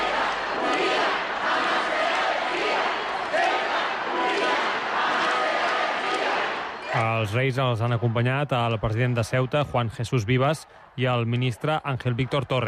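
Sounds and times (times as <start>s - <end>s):
large crowd shouting and chanting slogans: 0.0s - 7.0s
large crowd applauding: 0.0s - 12.6s
speech: 7.2s - 12.6s.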